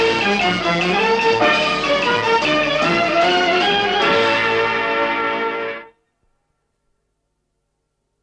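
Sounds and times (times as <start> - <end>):
title theme music: 0.0 - 5.9.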